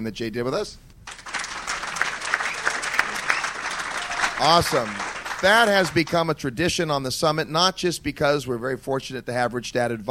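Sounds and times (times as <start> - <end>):
speech: 0.0 - 0.9, 4.4 - 10.0
audience applause: 1.1 - 6.2.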